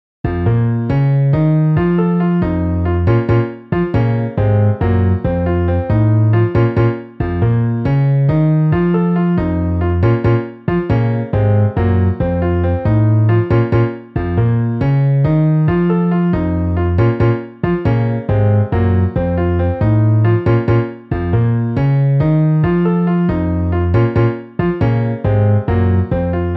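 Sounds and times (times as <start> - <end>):
MIDI piano and bass: 0.2 - 26.5.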